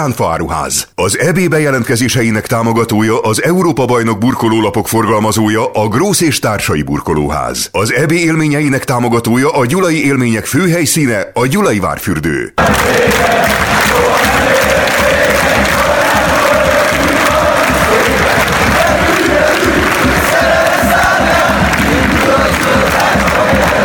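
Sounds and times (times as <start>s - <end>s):
speech: 0.0s - 15.1s
20000 Hungarian football fans cheering in Bordeaux stadium: 12.6s - 23.8s.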